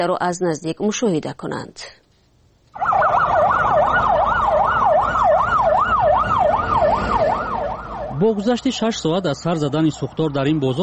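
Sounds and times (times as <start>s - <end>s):
speech: 0.0s - 2.0s, 8.2s - 10.8s
low rumble of traffic and engine noise: 2.7s - 10.8s
fire engine siren at market fire: 2.8s - 10.8s.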